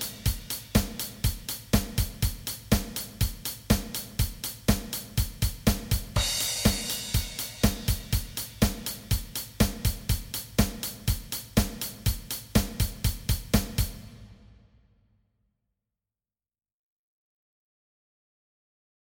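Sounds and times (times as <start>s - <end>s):
drums: 0.0s - 14.9s.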